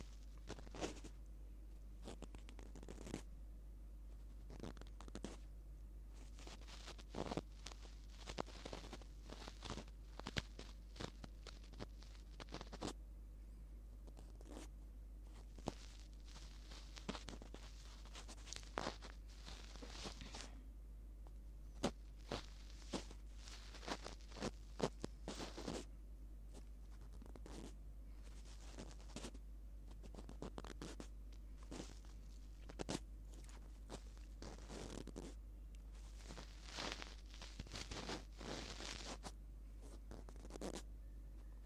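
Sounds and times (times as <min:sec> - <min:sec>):
dry scratching strokes of ear cleaning: 0:00.0 - 0:01.1, 0:06.2 - 0:12.9, 0:15.3 - 0:20.5, 0:21.8 - 0:25.9, 0:30.0 - 0:40.8
constant low hum: 0:00.0 - 0:41.6.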